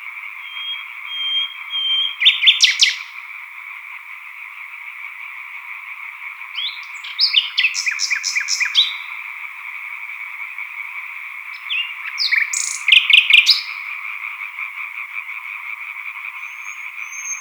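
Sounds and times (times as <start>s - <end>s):
coots calling: 0.0s - 3.1s, 6.6s - 9.2s, 11.5s - 14.1s, 16.2s - 17.3s
chorus of green tree frogs: 0.0s - 17.3s
solo nightingale singing: 0.3s - 3.2s, 6.6s - 9.2s, 11.5s - 14.0s, 16.3s - 17.3s.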